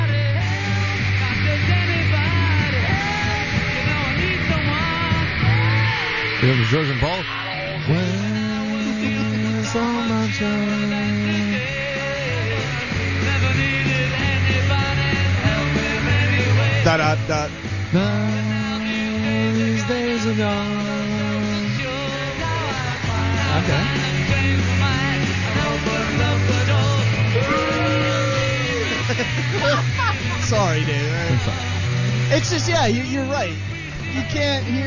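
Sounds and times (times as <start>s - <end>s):
loud steady lo-fi rock band recording: 0.0s - 34.8s
crowd of girls screaming: 5.4s - 6.4s, 27.3s - 30.4s
speech: 6.4s - 8.3s, 9.7s - 11.0s, 16.8s - 18.5s, 19.9s - 20.8s, 23.7s - 24.6s, 29.2s - 31.7s, 32.3s - 34.8s
laughter: 8.2s - 10.4s, 23.4s - 24.3s, 26.8s - 31.7s.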